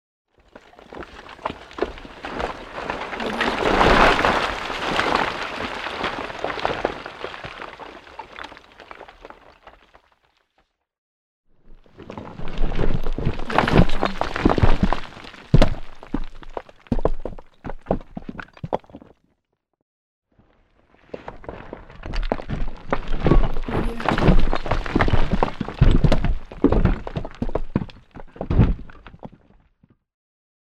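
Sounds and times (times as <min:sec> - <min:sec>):
construction waste clattering: 0:00.5 - 0:09.8, 0:12.0 - 0:19.0, 0:22.0 - 0:28.3.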